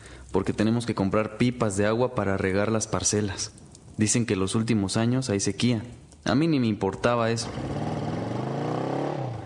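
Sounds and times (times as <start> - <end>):
speech: 0.4 - 7.9
motorcycle taxi engine idling and revving: 7.4 - 9.4.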